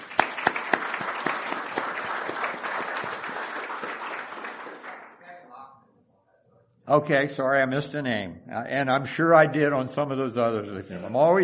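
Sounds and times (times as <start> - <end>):
audience applause: 0.0 - 5.2
speech: 6.9 - 11.4.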